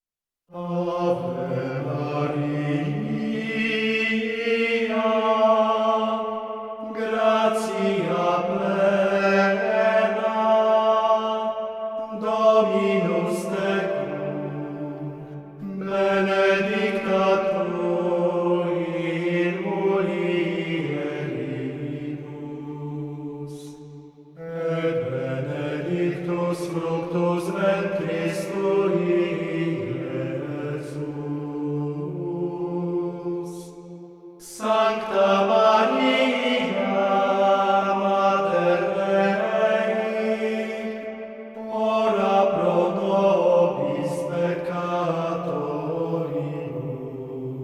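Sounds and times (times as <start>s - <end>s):
hymn sung in Latin: 0.5s - 47.6s.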